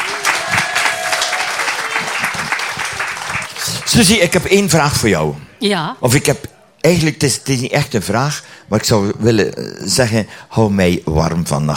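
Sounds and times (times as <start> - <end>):
audience applause: 0.0 - 4.7
speech: 4.0 - 11.7.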